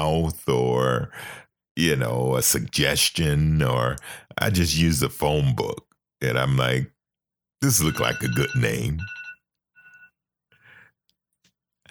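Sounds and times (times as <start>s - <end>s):
speech: 0.0s - 7.0s, 7.6s - 9.2s
timer going off with electronic beeps: 7.6s - 10.1s.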